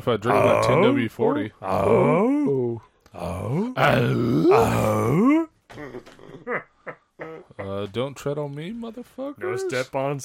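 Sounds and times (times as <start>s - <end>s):
speech: 0.0s - 6.7s, 7.6s - 10.2s
man imitating a sitcom handyman grunt: 0.3s - 1.0s, 1.6s - 5.9s.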